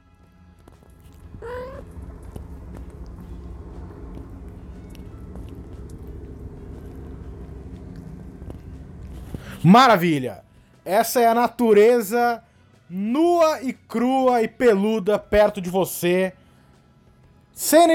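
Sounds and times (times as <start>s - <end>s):
cats licking and grooming each other: 0.5s - 9.6s
low rumble: 0.8s - 10.9s
speech: 9.6s - 16.4s, 17.6s - 17.9s.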